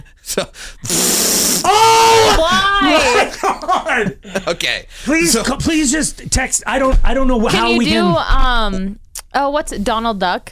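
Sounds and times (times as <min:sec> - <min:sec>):
speech: 0:00.2 - 0:10.5
mouth fart raspberry: 0:00.8 - 0:01.7
laughter: 0:02.5 - 0:05.3.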